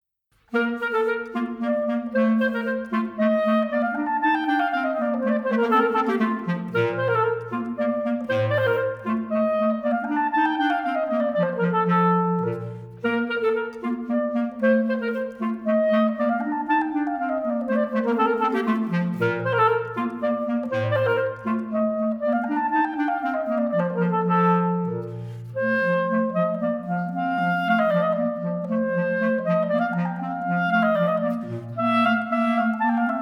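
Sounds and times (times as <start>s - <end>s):
classical clarinet duo playing a polonaise: 0.5s - 33.2s.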